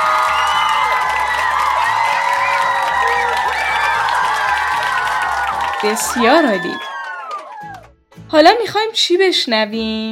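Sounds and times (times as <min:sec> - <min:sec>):
live show audience cheering: 0:00.0 - 0:07.9
speech: 0:05.8 - 0:06.9, 0:08.3 - 0:10.1.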